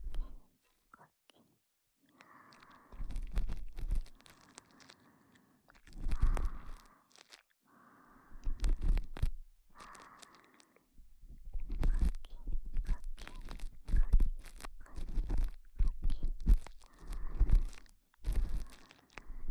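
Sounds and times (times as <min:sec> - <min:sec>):
ASMR ear cleaning: 0:02.5 - 0:05.0, 0:05.7 - 0:07.4, 0:08.4 - 0:10.6, 0:11.6 - 0:19.4.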